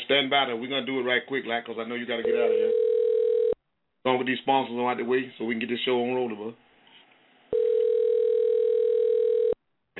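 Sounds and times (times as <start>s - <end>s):
speech: 0.1s - 2.8s, 4.0s - 6.6s
telephone ringing on the line: 2.2s - 3.6s, 7.5s - 9.6s.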